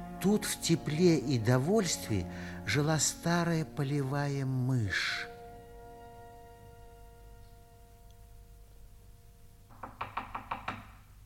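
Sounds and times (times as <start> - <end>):
speech: 0.2 - 5.3
knocking on a door: 9.7 - 11.1.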